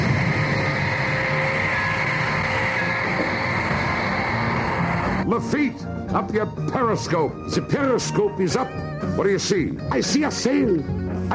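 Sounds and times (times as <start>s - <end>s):
submarine engines droning: 0.0s - 5.3s
speech: 5.4s - 11.3s.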